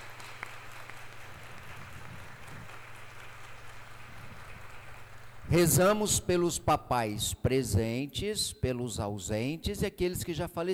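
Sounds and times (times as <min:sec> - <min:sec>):
audience applause: 0:00.0 - 0:05.5
speech: 0:05.5 - 0:10.7.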